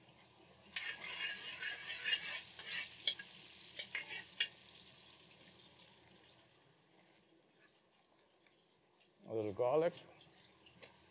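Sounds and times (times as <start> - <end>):
ginger frying in oil in a pan: 0.0 - 11.0
stirring clicks and scrapes: 0.7 - 3.2
speech: 9.4 - 10.1.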